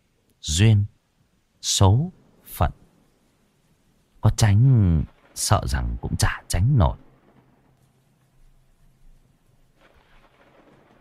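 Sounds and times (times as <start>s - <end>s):
wind and rain outside: 0.0s - 10.9s
speech: 0.5s - 0.9s, 1.6s - 2.8s, 4.2s - 7.0s.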